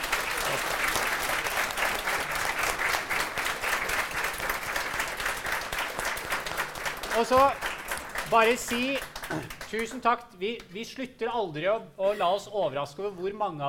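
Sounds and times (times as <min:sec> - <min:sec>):
audience applause: 0:00.0 - 0:10.0
speech: 0:07.2 - 0:07.6, 0:08.3 - 0:13.6.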